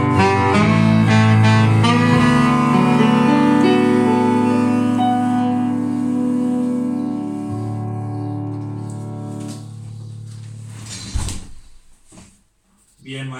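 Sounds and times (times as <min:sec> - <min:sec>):
saxophone: 0:00.0 - 0:09.7
piano: 0:00.0 - 0:12.3.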